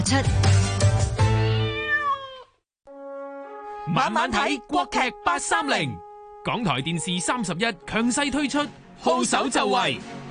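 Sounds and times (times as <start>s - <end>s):
speech: 0.1s - 0.6s, 3.9s - 10.2s
cat wanting food meowing: 1.3s - 2.6s.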